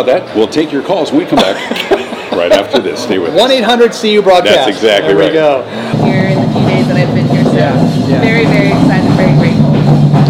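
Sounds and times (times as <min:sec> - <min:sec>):
speech: 0:00.0 - 0:09.7
laughter: 0:01.3 - 0:03.4, 0:04.7 - 0:05.9
train passing by: 0:04.8 - 0:10.2.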